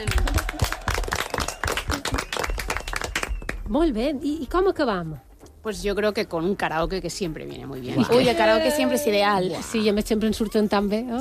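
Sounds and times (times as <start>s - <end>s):
applause: 0.0s - 3.7s
speech: 3.7s - 11.1s.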